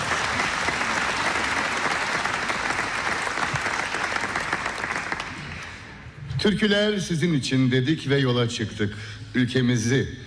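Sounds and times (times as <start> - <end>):
audience applause: 0.0 - 5.9
speech: 6.4 - 10.2.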